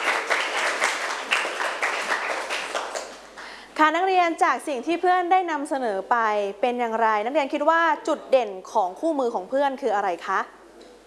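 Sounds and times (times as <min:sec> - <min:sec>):
classroom applause: 0:00.0 - 0:03.6
speech: 0:03.8 - 0:10.6.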